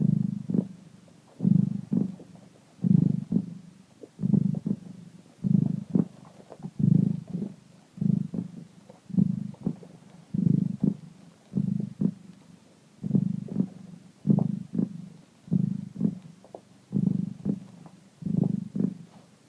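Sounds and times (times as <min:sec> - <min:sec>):
cat purring: 0:00.0 - 0:19.4.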